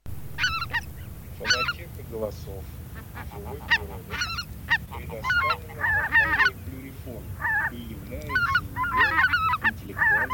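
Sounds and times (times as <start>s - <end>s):
greater white-fronted geese yelping honks and chatter: 0.1s - 10.3s.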